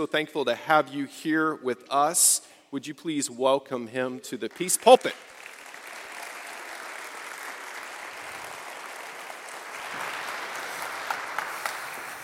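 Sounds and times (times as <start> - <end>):
speech: 0.0 - 5.4
audience clapping: 4.5 - 12.2.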